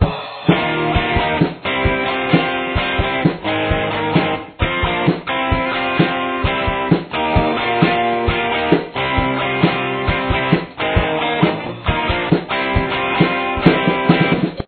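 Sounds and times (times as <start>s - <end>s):
guitar intro: 0.0s - 14.6s.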